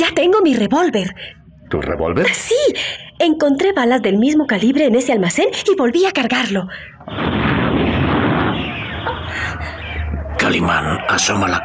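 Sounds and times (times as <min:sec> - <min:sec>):
speech: 0:00.2 - 0:07.8, 0:10.4 - 0:11.6
roar of explosions: 0:07.0 - 0:11.2.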